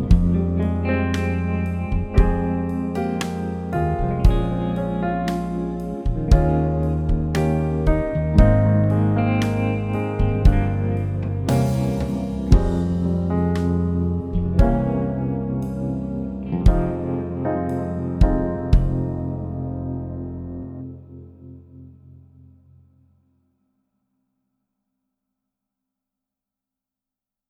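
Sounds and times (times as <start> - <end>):
jazz backing track: 0.0 - 21.8.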